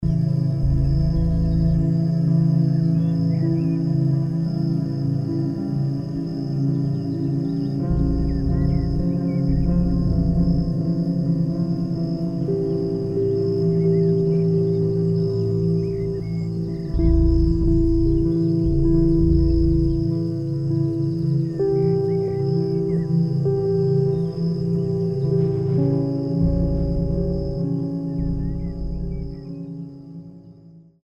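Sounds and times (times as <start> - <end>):
ambient healing music: 0.0 - 31.0.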